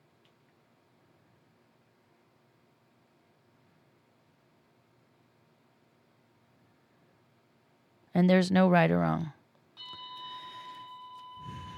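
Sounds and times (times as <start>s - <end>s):
speech: 8.2s - 9.4s
timer alarm ringing: 9.8s - 11.7s.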